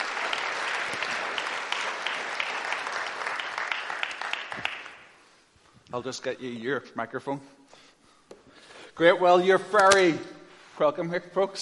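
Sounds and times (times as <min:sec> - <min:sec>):
audience applause: 0:00.0 - 0:05.2
speech: 0:05.9 - 0:07.6, 0:09.0 - 0:11.6.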